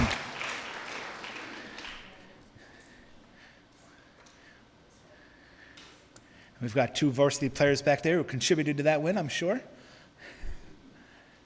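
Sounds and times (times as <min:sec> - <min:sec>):
audience applause: 0:00.0 - 0:02.2
speech: 0:06.6 - 0:10.3.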